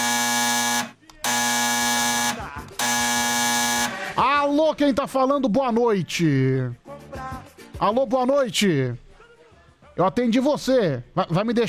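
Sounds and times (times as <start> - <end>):
telephone ringing with harsh buzzing electronic tone: 0.0 - 4.3
speech: 4.6 - 6.8, 7.8 - 9.0, 10.0 - 11.6.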